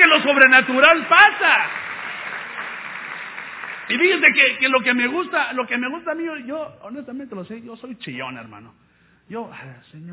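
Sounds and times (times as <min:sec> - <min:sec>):
audience applause: 0:00.0 - 0:04.8
speech: 0:00.1 - 0:01.8, 0:03.9 - 0:10.1.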